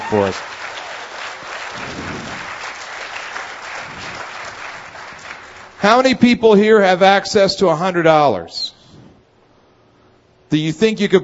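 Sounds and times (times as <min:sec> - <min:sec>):
audience applause: 0:00.0 - 0:05.8
speech: 0:00.1 - 0:00.6, 0:05.8 - 0:08.6, 0:10.5 - 0:11.2.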